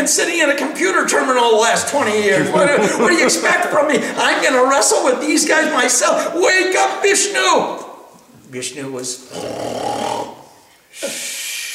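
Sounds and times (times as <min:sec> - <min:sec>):
speech: 0:00.0 - 0:07.9, 0:08.5 - 0:10.4, 0:11.0 - 0:11.3
laughter: 0:01.7 - 0:04.7
snoring: 0:09.3 - 0:10.6.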